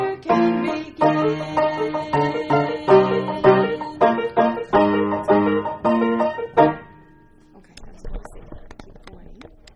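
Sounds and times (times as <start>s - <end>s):
alto choir singing: 0.0s - 5.6s.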